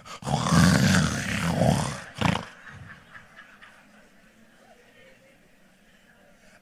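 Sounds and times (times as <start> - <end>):
voice imitating a man's loud snoring: 0.0 - 2.6
laughter: 1.0 - 5.2.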